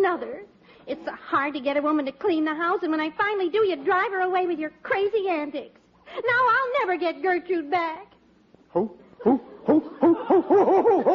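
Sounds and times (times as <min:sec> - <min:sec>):
speech: 0:00.0 - 0:08.1, 0:08.7 - 0:11.1
man hooting like an owl: 0:08.7 - 0:11.1.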